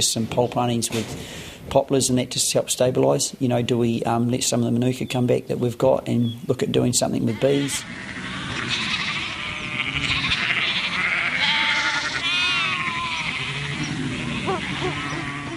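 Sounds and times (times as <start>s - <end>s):
speech: 0.0s - 9.0s
sheep and lambs bleating: 7.2s - 15.5s.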